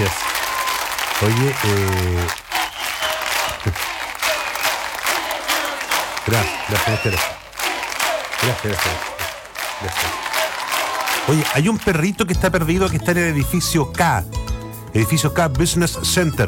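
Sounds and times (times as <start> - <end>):
audience clapping: 0.0 - 12.5
crowd cheering and shouting: 0.0 - 12.6
speech: 1.2 - 2.4, 3.6 - 3.9, 6.3 - 7.4, 8.4 - 9.1, 9.8 - 10.3, 11.2 - 16.4.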